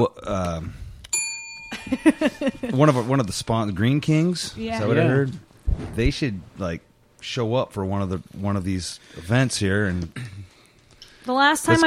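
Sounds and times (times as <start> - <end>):
speech: 0.0 - 0.8, 1.8 - 10.5, 11.2 - 11.8
bell struck on a radio talk show: 1.1 - 2.7.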